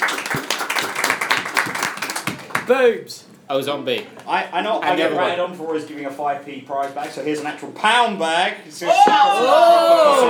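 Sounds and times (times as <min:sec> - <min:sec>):
audience applause: 0:00.0 - 0:02.7
speech: 0:02.7 - 0:10.2.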